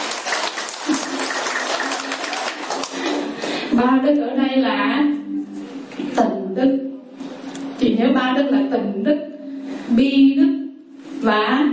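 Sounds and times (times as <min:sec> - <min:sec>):
audience clapping: 0:00.0 - 0:03.5
speech: 0:03.8 - 0:05.2, 0:06.2 - 0:06.8, 0:07.9 - 0:09.2, 0:09.9 - 0:10.6, 0:11.2 - 0:11.7.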